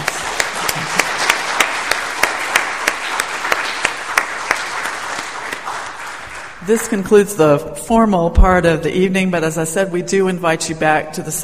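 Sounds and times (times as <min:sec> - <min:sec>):
audience applauding: 0:00.0 - 0:07.0
speech: 0:06.7 - 0:11.4.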